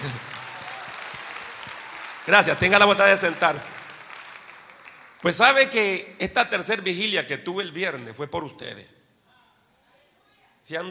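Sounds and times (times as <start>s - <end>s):
audience applause: 0.0s - 5.8s
speech: 2.3s - 3.8s, 5.2s - 9.0s, 10.6s - 10.8s.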